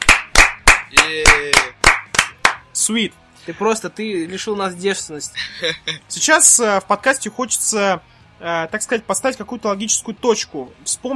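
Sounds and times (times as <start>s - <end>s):
hands clapping to welcome a first podcast guest: 0.0s - 2.7s
speech: 0.9s - 1.9s, 2.8s - 11.1s
laughter: 5.4s - 6.1s.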